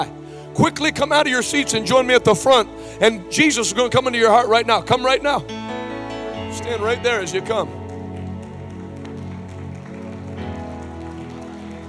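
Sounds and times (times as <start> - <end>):
speech: 0.0 - 5.6, 6.6 - 7.8
audience clapping: 6.6 - 11.8.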